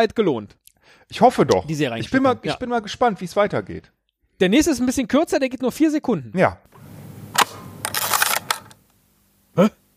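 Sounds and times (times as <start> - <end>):
speech: 0.0 - 6.7, 9.6 - 9.8
Hasselblad camera shutter click: 7.3 - 8.8
mechanical film-winding crank: 7.8 - 8.8.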